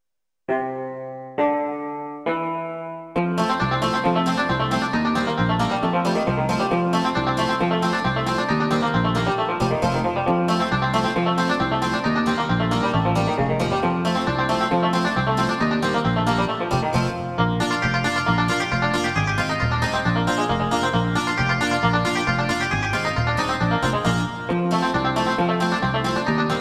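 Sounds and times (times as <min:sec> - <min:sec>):
banjo: 0:01.4 - 0:26.5.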